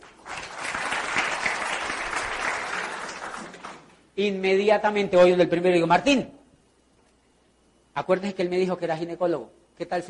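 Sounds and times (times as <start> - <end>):
audience applause: 0.0 - 3.9
speech: 4.2 - 6.4, 8.0 - 10.0.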